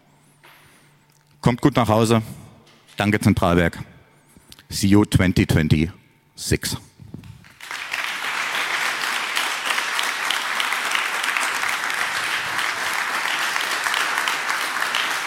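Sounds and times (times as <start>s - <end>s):
speech: 1.4s - 2.4s, 3.0s - 3.9s, 4.7s - 6.9s
audience applause: 7.5s - 15.2s.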